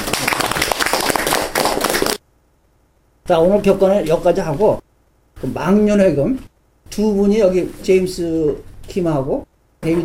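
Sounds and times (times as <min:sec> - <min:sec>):
audience applause welcoming a new member at a year-end gathering: 0:00.0 - 0:02.2
speech: 0:03.3 - 0:04.8, 0:05.4 - 0:10.0.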